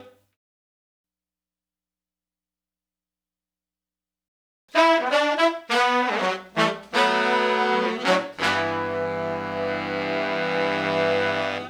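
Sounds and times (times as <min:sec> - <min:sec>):
1970s analog funk soul horns: 0:04.7 - 0:11.6.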